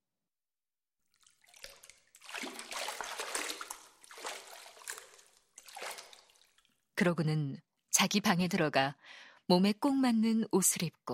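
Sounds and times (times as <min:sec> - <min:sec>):
water splashing and sloshing during bathing: 0:01.1 - 0:06.9
speech: 0:07.0 - 0:11.1.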